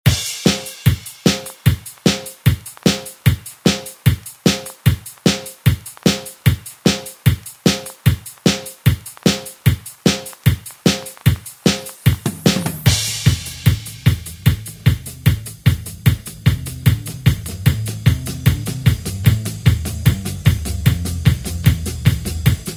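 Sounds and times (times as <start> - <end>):
sixties-style drums: 0.0 - 22.7.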